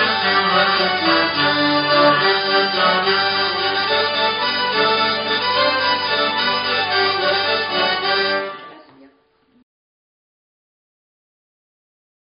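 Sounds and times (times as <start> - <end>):
bourrée music transition: 0.0 - 8.7.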